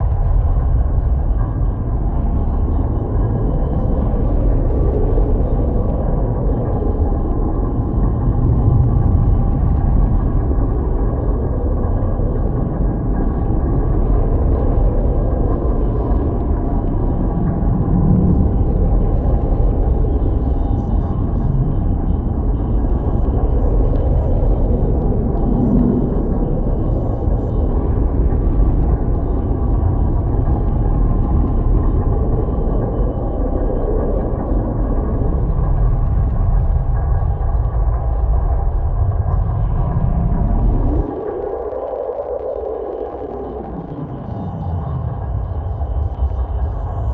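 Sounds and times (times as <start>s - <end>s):
gas giant planet orbiting ambience: 0.0s - 47.1s.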